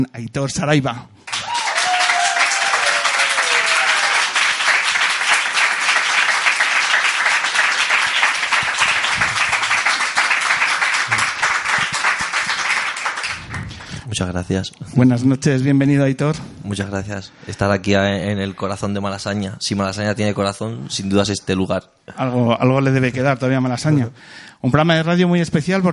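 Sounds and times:
speech: 0.0 - 1.1, 14.2 - 25.9
audience applause: 1.3 - 14.0.

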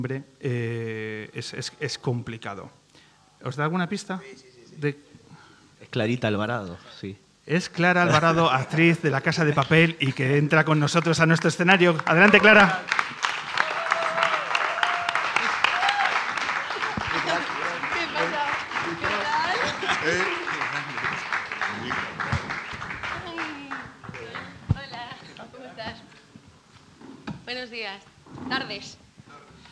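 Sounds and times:
speech: 0.0 - 2.8, 3.4 - 5.2, 5.9 - 13.1
laughter: 8.1 - 10.2, 12.0 - 13.0, 16.4 - 23.6
applause: 10.7 - 25.2.

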